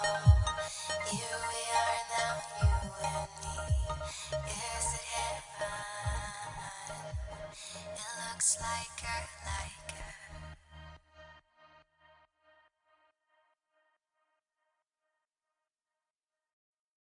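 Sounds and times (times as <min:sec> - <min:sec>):
trance beat: 0:00.0 - 0:07.5
female vocals: 0:00.0 - 0:10.6.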